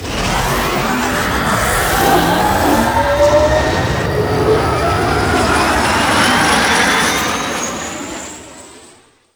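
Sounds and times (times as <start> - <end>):
vehicles arriving for extraction: 0.0 - 7.9.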